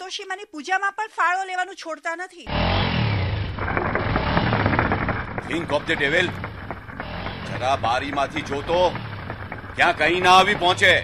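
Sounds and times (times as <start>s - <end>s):
speech: 0.1s - 3.0s, 5.4s - 6.5s, 7.5s - 9.1s, 9.8s - 11.0s
motorcycle engine revving loudly while stopped beside a roadside paan stall: 2.5s - 11.0s.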